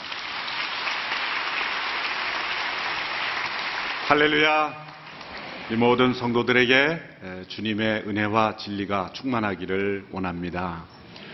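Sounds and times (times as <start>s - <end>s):
audience applause: 0.0s - 5.7s
speech: 4.1s - 4.9s, 5.7s - 11.0s.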